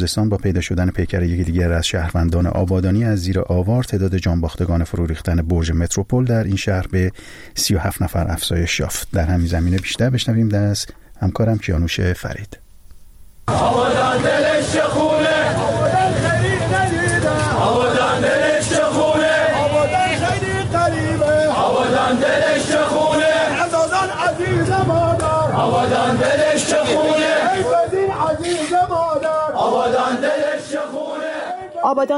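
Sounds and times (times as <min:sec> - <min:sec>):
speech: 0:00.0 - 0:12.6, 0:13.5 - 0:15.3, 0:31.8 - 0:32.1
crowd of protesters and mourners chanting: 0:13.5 - 0:32.0.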